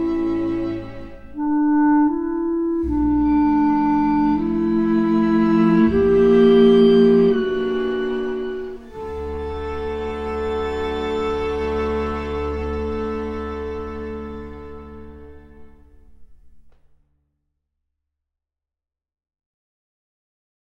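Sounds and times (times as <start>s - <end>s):
string quintet with clarinet: 0.0s - 16.0s.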